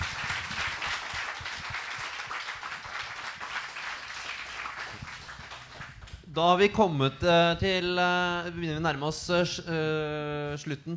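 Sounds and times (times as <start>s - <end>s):
applause: 0.0s - 6.2s
speech: 6.4s - 10.9s.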